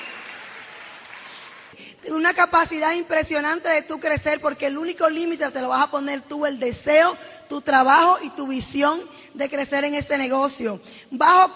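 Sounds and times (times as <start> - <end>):
audience applause: 0.0 - 1.7
speech: 1.8 - 11.5.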